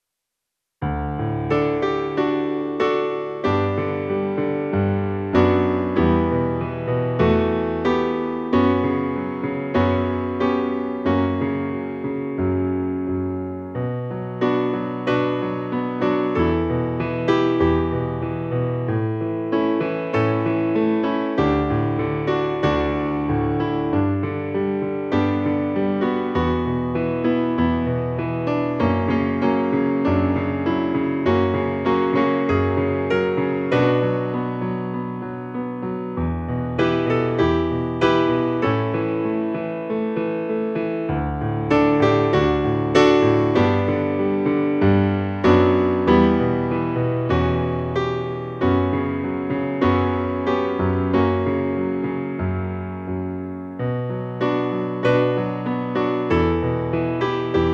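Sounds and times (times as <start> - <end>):
piano: 0.8 - 57.7.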